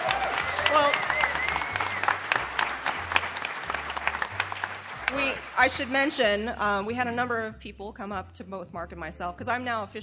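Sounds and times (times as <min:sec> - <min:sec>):
audience applause from a crowd: 0:00.0 - 0:06.1
speech: 0:05.6 - 0:10.0.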